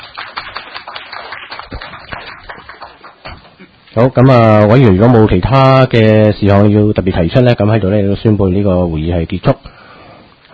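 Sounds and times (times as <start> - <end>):
applause: 0.0 - 3.6
speech: 4.0 - 9.7.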